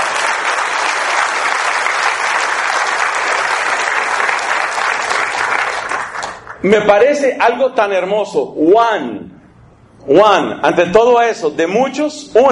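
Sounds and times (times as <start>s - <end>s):
audience applause: 0.0s - 6.6s
speech: 6.6s - 9.2s, 10.1s - 12.4s.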